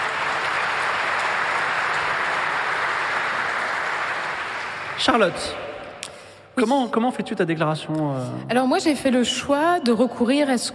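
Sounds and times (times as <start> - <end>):
audience applause: 0.0 - 5.8
speech: 5.0 - 5.6, 6.6 - 10.7.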